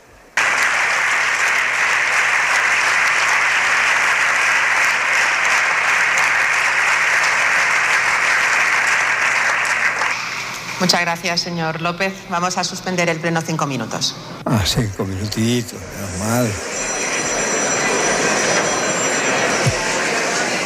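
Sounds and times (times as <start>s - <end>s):
parliament benches applauding: 0.4s - 10.4s, 16.0s - 20.6s
speech: 10.8s - 16.8s.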